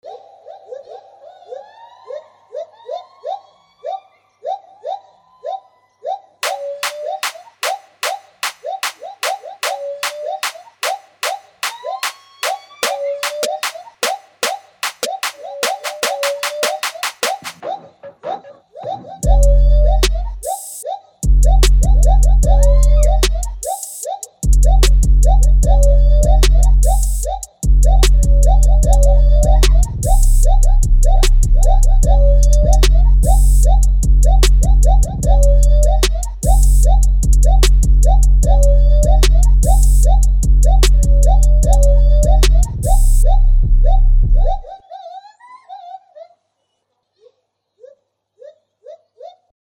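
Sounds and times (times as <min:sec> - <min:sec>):
music beat: 0:06.4 - 0:17.8, 0:19.2 - 0:44.6.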